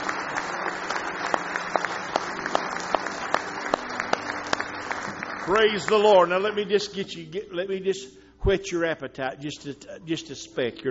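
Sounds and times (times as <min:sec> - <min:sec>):
audience applause: 0:00.0 - 0:06.8
speech: 0:05.5 - 0:10.9.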